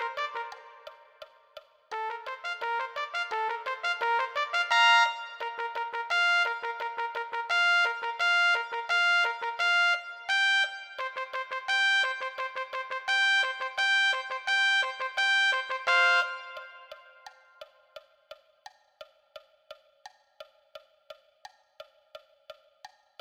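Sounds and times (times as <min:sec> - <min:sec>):
trumpet: 0:00.0 - 0:17.6.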